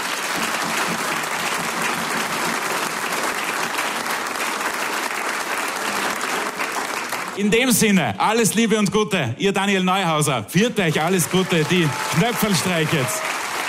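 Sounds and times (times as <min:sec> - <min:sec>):
audience applause: 0:00.0 - 0:07.6, 0:10.8 - 0:13.6
speech: 0:07.4 - 0:13.2.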